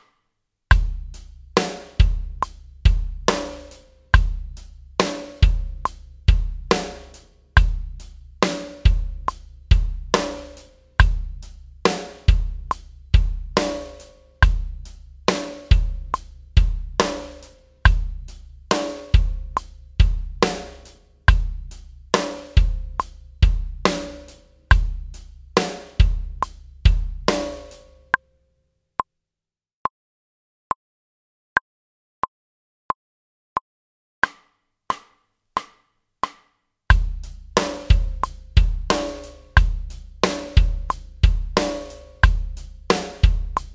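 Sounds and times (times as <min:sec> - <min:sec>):
backing track: 0:00.8 - 0:28.0, 0:36.9 - 0:43.7.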